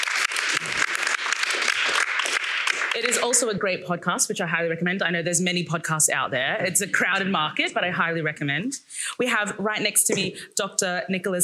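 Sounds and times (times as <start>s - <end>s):
audience applause: 0.0s - 3.4s
speech: 3.0s - 11.4s.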